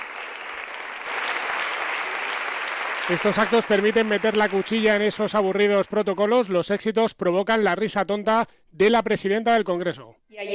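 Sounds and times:
applause greeting a team at an official welcome reception: 0.0 - 6.4
speech: 3.1 - 10.5.

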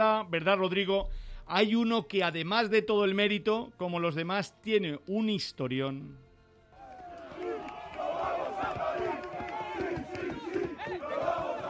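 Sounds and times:
speech: 0.2 - 6.2
Spanish rugby team celebrating victory, cheering: 6.7 - 11.6.

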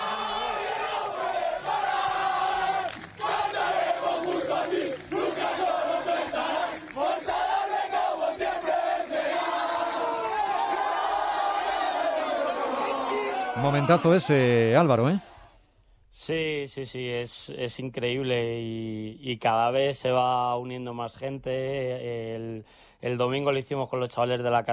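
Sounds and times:
football team players shouting and singing after beating Pontevedra: 0.0 - 14.9
speech: 13.6 - 15.3, 16.2 - 24.7.

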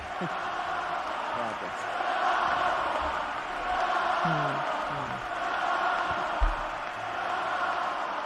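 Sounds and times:
sports fans shouting and cheering: 0.0 - 8.2.

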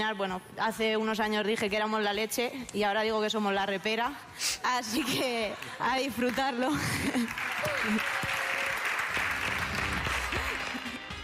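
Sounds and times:
speech: 0.0 - 8.2
audience applause: 7.1 - 11.2.

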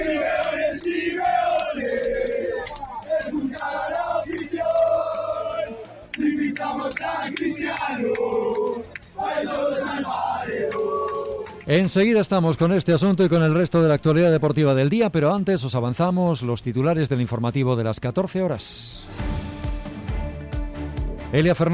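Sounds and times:
football fans shouting protest chants: 0.0 - 11.7
speech: 11.7 - 19.2, 21.3 - 21.7.

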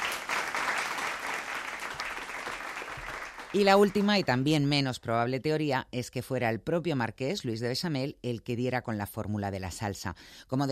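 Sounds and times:
crowd applauding: 0.0 - 4.2
speech: 3.5 - 10.7.

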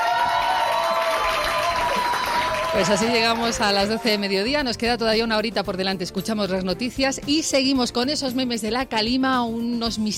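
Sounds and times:
audience applause: 0.0 - 4.3
crowd noise: 0.0 - 4.4
speech: 2.8 - 10.1.

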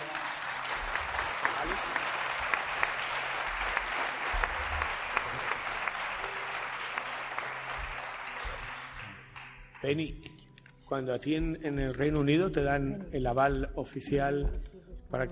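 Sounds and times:
audience applause: 0.0 - 10.0
speech: 9.8 - 10.3, 10.9 - 15.2.

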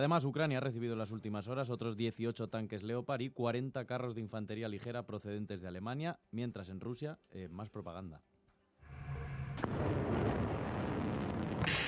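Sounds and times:
speech: 0.0 - 8.3
anti-ship missile launch: 8.9 - 11.8.

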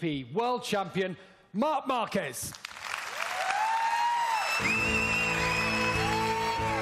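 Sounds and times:
speech: 0.0 - 2.7, 4.6 - 5.0
ovation from an audience: 2.7 - 6.8.

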